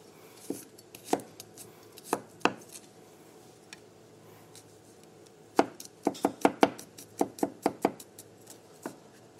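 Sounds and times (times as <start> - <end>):
knife chopping garlic on a cutting board: 5.6 - 8.1.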